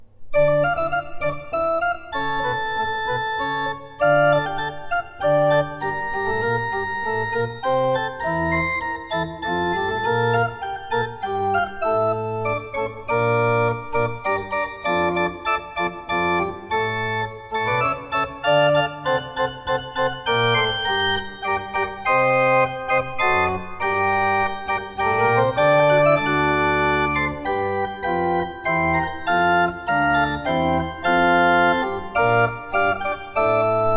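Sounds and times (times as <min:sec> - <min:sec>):
Tzschoeckel pipe organ playing: 0:00.4 - 0:33.9.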